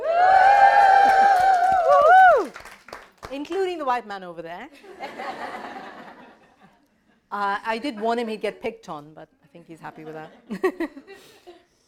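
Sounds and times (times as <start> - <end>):
audience cheering: 0.0 - 2.7
speech: 3.4 - 6.0, 7.3 - 11.4.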